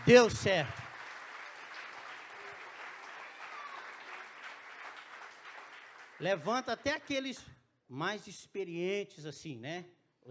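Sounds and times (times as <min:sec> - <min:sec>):
audience applause: 0:00.0 - 0:07.0
speech: 0:00.1 - 0:00.8, 0:06.2 - 0:10.0.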